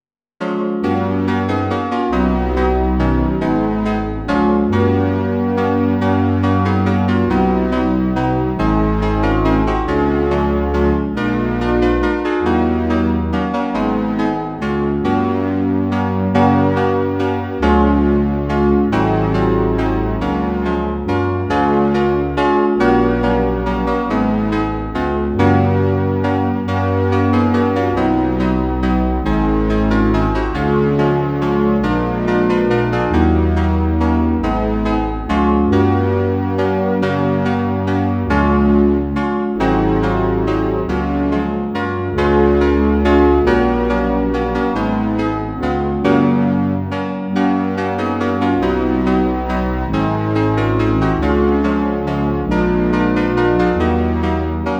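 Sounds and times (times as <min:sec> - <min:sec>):
Christmas carol played on synthesizer: 0:00.4 - 0:54.7.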